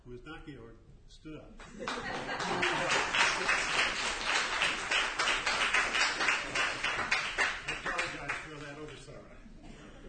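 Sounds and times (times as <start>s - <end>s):
speech: 0.1s - 4.4s
laughter: 1.6s - 4.0s, 9.4s - 10.0s
audience applause: 1.6s - 9.0s.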